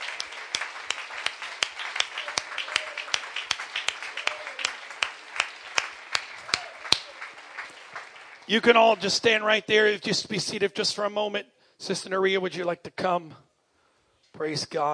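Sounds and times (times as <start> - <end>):
scattered applause: 0.0 - 9.6
audience clapping in a steady rhythm: 0.0 - 10.0
speech: 8.5 - 13.4, 14.4 - 14.9.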